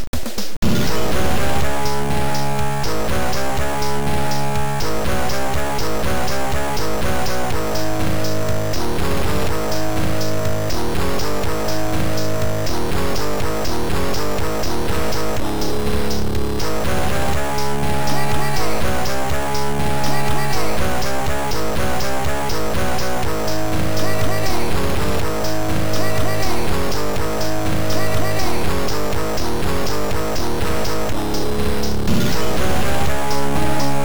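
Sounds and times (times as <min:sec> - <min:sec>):
rock and roll music: 0:00.2 - 0:34.0.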